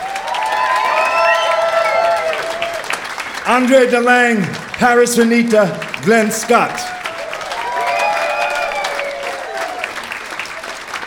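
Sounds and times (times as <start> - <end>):
crowd cheering and whooping: 0.0 - 3.4, 6.8 - 11.0
audience applause: 0.0 - 11.0
speech: 3.5 - 6.9.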